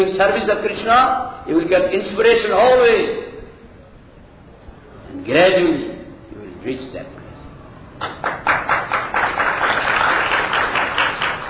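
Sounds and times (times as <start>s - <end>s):
speech: 0.0s - 3.4s, 5.2s - 5.9s, 6.6s - 7.2s
audience clapping: 8.0s - 11.4s.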